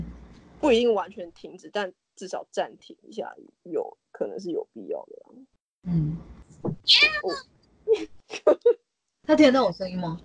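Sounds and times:
speech: 0:00.6 - 0:10.2
cat meowing at the phone: 0:06.9 - 0:07.4.

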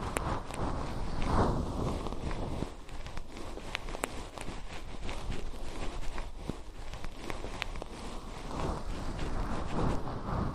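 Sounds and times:
fluffy ear cleaning rustle: 0:00.0 - 0:10.5.

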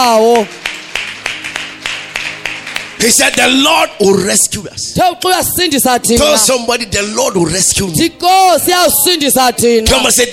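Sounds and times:
speech: 0:00.0 - 0:00.6, 0:03.0 - 0:10.3
church congregation clapping: 0:00.1 - 0:03.9.

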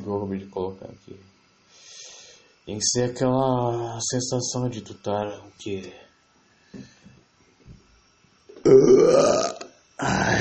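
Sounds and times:
speech: 0:00.1 - 0:01.9, 0:02.6 - 0:06.1, 0:06.7 - 0:07.0, 0:08.6 - 0:10.3
loud burp: 0:08.6 - 0:10.3.

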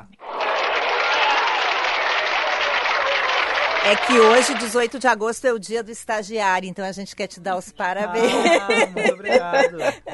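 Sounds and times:
studio applause as a tribute for intern day on a happy hour show: 0:00.2 - 0:05.0
speech: 0:03.8 - 0:10.1
laughter: 0:07.9 - 0:10.1.

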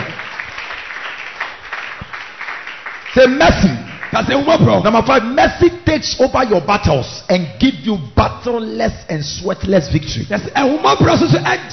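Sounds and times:
audience clapping hands: 0:00.0 - 0:05.4
speech: 0:03.1 - 0:11.7.

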